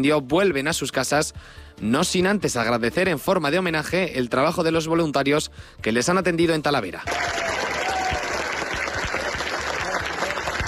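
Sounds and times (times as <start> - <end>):
speech: 0.0 - 7.6
applause for volunteers: 7.1 - 10.6.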